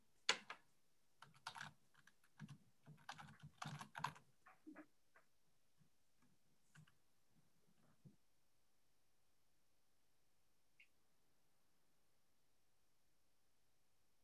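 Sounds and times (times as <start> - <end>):
typing on a computer keyboard: 0.3 - 0.7, 1.2 - 4.7.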